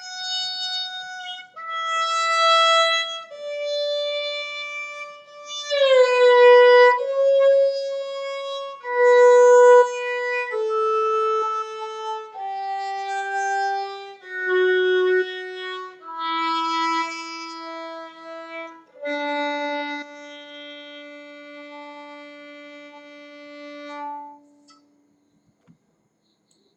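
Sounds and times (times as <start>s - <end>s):
violin playing D major scale over two octaves on open strings: 0.0s - 24.8s.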